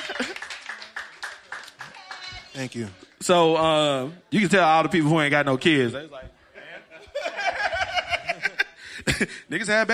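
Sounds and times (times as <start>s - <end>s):
people clapping: 0.0s - 3.0s
speech: 2.6s - 6.4s, 9.2s - 9.9s
laughter: 6.4s - 9.5s.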